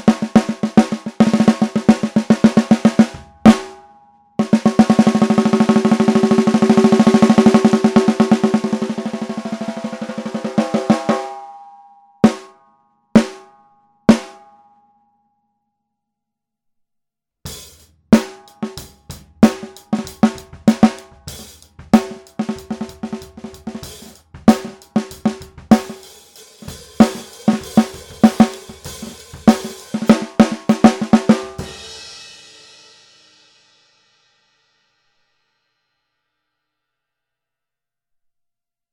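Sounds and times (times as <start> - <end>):
aluminium 14x5 snare drum: 0.0 - 3.8, 4.4 - 11.3, 17.5 - 32.1.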